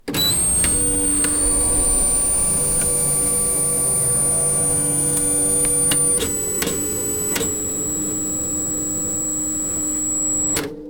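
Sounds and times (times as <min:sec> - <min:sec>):
fixing a delicate machine: 0:00.0 - 0:10.8.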